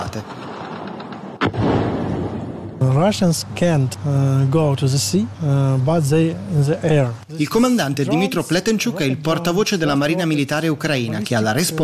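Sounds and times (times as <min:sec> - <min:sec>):
rough rumbling noise: 0:00.0 - 0:06.3
speech: 0:00.1 - 0:00.4, 0:02.8 - 0:11.8
anti-aircraft burst: 0:00.2 - 0:03.5
low hum: 0:01.5 - 0:11.8.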